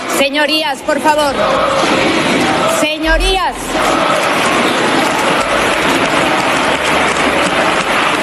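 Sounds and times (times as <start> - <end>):
speech: 0.2 - 4.4
parliamentary ovation, large crowd applauding: 1.3 - 8.2.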